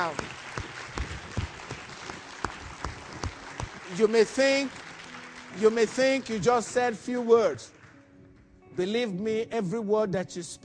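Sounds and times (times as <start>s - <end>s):
scattered clapping from a church congregation giving a clap offering: 0.0s - 8.0s
speech: 4.0s - 4.8s, 5.6s - 7.8s, 8.8s - 10.6s.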